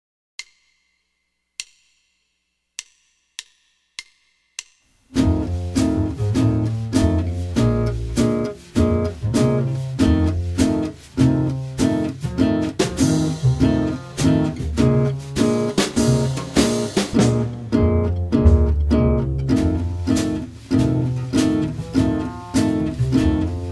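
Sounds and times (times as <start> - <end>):
F major jazz guitar chord with root on sixth string: 5.2 - 23.6.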